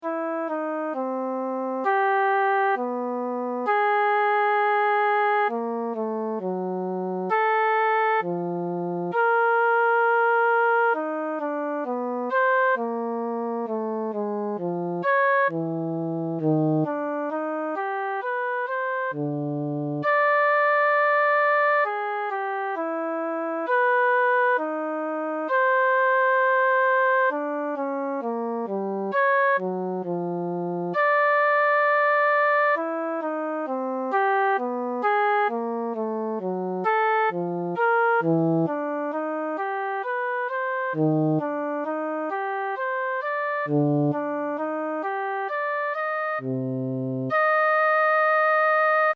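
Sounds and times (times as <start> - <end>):
flute improvisation: 0.0 - 49.1.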